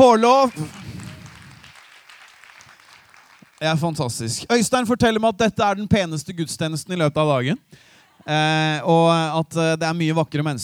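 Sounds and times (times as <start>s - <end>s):
speech: 0.0s - 0.8s, 3.6s - 10.6s
audience applause: 0.3s - 4.0s.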